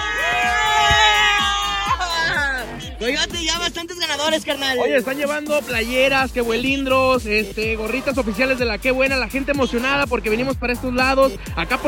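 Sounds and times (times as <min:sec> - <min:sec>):
crowd shouting and cheering: 0:00.0 - 0:04.9
speech: 0:03.0 - 0:11.8.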